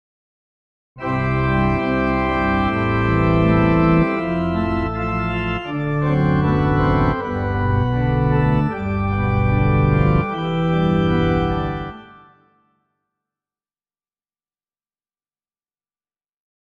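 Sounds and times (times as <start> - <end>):
classical piece: 1.0 - 12.8.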